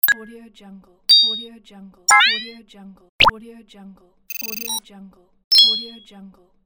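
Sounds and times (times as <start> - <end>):
infographic bleep: 0.0 - 0.3, 1.1 - 1.5, 2.1 - 2.6, 4.3 - 4.8, 5.5 - 6.0.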